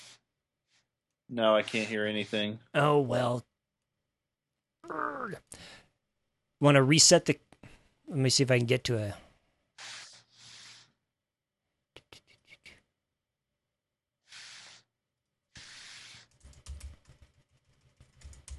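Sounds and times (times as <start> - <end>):
speech: 1.3 - 3.5, 4.8 - 5.8, 6.6 - 7.5, 8.1 - 9.2
typing a chat message on a computer keyboard: 16.3 - 18.5.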